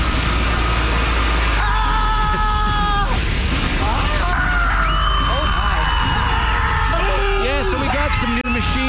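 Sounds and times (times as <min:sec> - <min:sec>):
steady low hum: 0:00.0 - 0:08.6
voice imitating screams: 0:01.6 - 0:03.2, 0:03.8 - 0:08.8.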